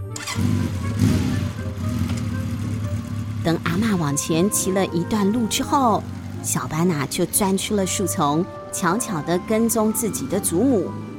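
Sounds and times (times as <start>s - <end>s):
engine starting on electric scooter: 0.0s - 2.4s
speech: 3.4s - 11.1s.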